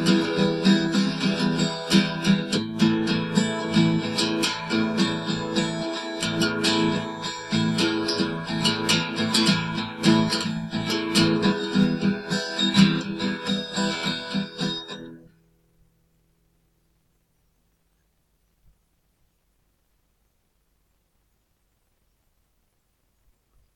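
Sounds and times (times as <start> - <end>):
guitar: 0.0 - 16.1.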